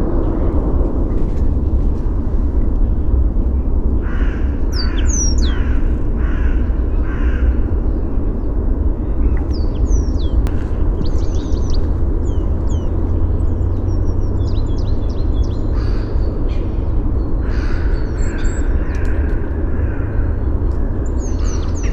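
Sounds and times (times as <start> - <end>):
steady loud low rumble: 0.0 - 21.9
birds whistling and chirping: 4.7 - 5.8, 9.1 - 19.4, 21.0 - 21.9.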